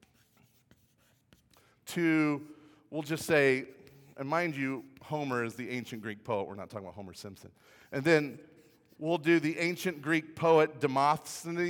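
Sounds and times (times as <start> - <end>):
marker writing words on a board: 0.0 - 1.6, 3.2 - 6.3
speech: 1.9 - 11.6.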